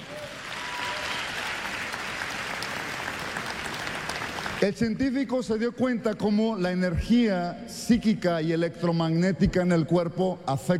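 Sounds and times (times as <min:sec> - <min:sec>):
audience applause: 0:00.0 - 0:04.7
speech: 0:04.6 - 0:10.7.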